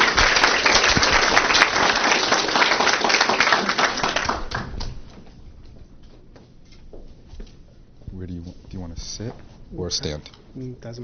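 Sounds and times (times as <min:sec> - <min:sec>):
audience applause: 0:00.0 - 0:05.1
speech: 0:09.2 - 0:11.0.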